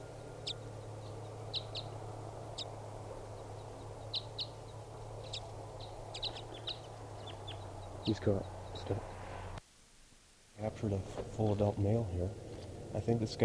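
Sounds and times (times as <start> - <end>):
small bird chirping: 0.0 - 9.6
steady low hum: 0.0 - 13.4
speech: 8.1 - 9.0, 10.7 - 13.4.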